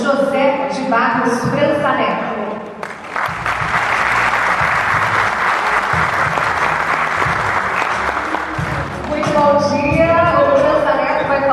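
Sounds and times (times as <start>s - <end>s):
speech: 0.1s - 2.5s
crowd applauding: 2.8s - 11.4s.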